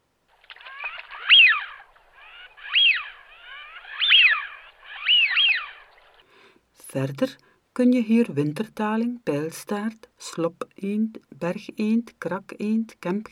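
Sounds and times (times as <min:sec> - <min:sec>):
Eurasian wigeon calls: 0:00.4 - 0:06.5
speech: 0:06.9 - 0:13.2.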